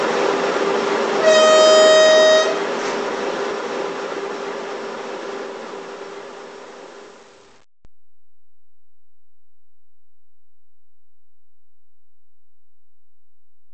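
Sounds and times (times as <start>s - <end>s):
OEBB class 1110 locomotive sounds from Loksound H0 Roco model: 0.0s - 7.5s.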